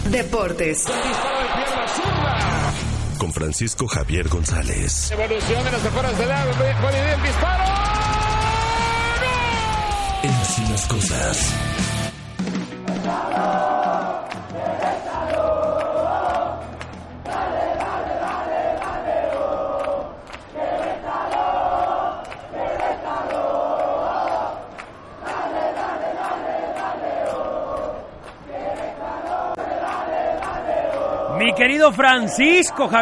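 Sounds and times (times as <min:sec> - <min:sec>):
speech: 0:00.1 - 0:08.1, 0:10.2 - 0:11.9, 0:31.6 - 0:33.0
football stadium crowd roar: 0:00.9 - 0:02.9, 0:05.1 - 0:11.4, 0:12.8 - 0:33.0
football stadium crowd chanting in unison: 0:12.9 - 0:33.0.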